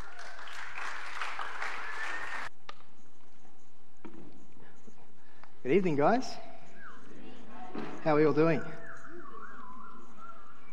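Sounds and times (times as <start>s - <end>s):
audience clapping in welcome at an evening event: 0.0s - 2.5s
audience whistle: 0.1s - 2.5s, 5.8s - 10.7s
speech: 5.6s - 6.5s, 8.0s - 8.8s.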